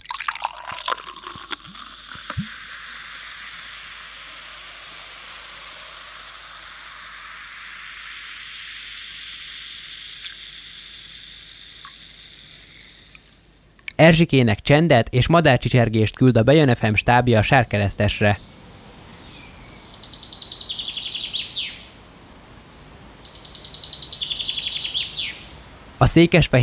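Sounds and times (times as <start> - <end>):
carbon dioxide fizzing in a freshly poured spritzer: 0.0 - 16.3
speech: 14.0 - 18.5, 26.1 - 26.6.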